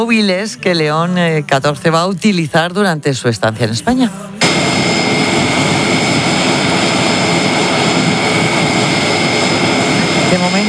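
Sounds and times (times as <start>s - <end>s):
speech: 0.0s - 4.9s
Air Force airplane engines roaring as it lands in Madrid: 4.4s - 10.6s.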